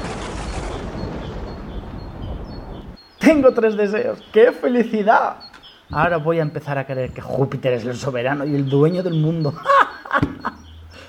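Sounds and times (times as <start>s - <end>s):
lightning cracks: 0.0s - 3.0s
storm: 0.0s - 3.0s
thunder: 0.0s - 3.0s
speech: 3.3s - 10.6s
laughter: 9.3s - 11.0s.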